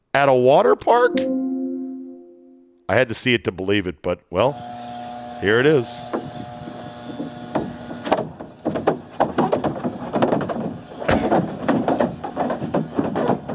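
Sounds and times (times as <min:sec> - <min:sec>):
speech: 0:00.2 - 0:01.4, 0:02.9 - 0:04.7, 0:05.4 - 0:06.2
cow hooves clattering on dry water slide: 0:07.1 - 0:13.5.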